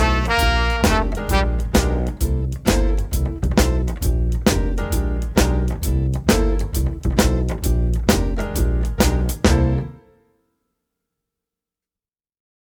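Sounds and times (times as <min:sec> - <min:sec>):
shuffle rhythm: 0:00.0 - 0:10.0.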